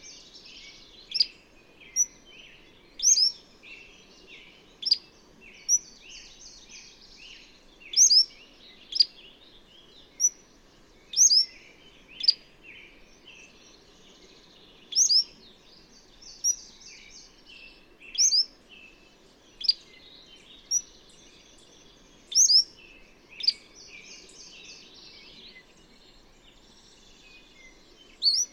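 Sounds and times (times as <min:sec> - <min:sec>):
bird twittering song: 0:00.0 - 0:28.5.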